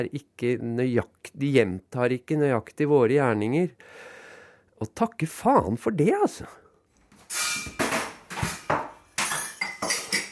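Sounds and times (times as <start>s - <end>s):
speech: 0.0s - 4.2s, 4.8s - 6.6s
teacups and bowls being gathered together: 8.6s - 10.3s.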